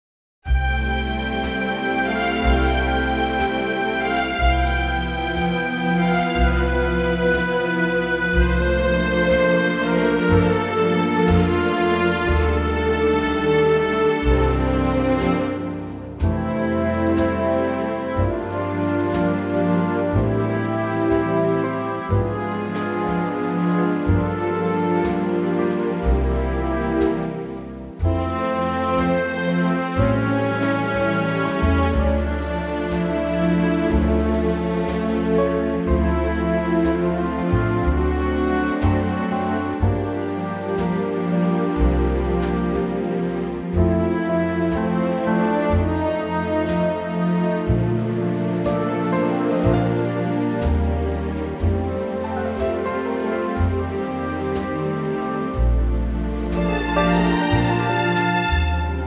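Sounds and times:
orchestral music in F: 0.4 - 59.0.

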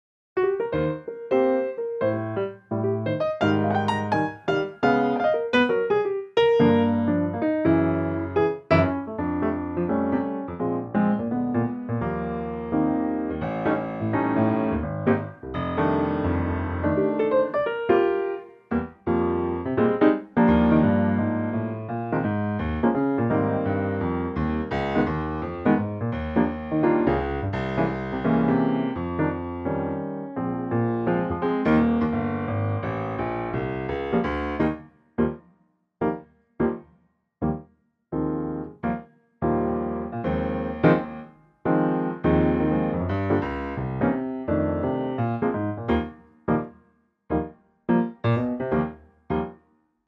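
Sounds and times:
piano E flat: 0.4 - 35.4, 37.4 - 49.6.

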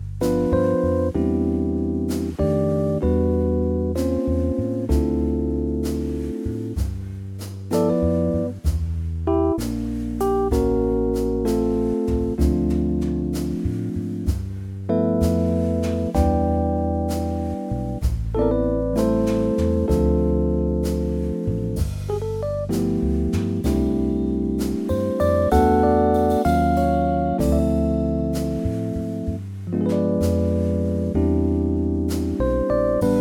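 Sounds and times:
Rhodes electric piano playing in C: 0.0 - 7.0, 7.6 - 33.1.

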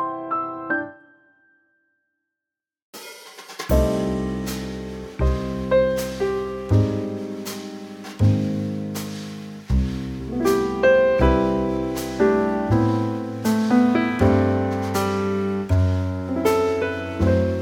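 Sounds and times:
trio music in C: 3.7 - 17.6.

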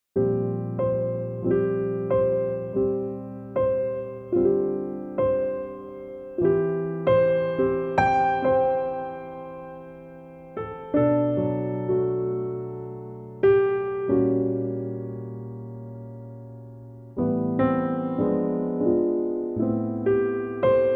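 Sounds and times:
piano G note: 0.2 - 20.9.

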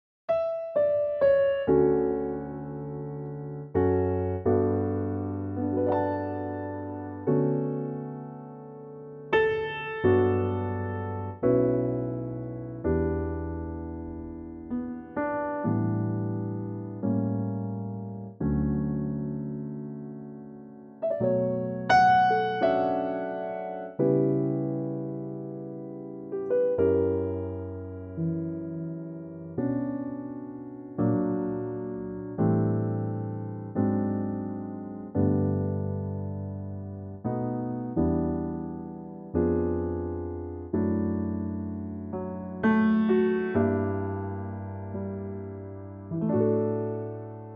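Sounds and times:
piano note: 0.3 - 47.5.

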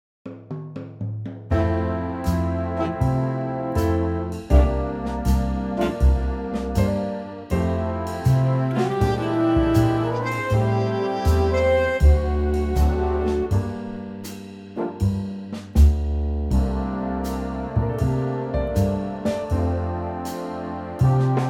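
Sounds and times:
big band music in F: 1.5 - 21.4.

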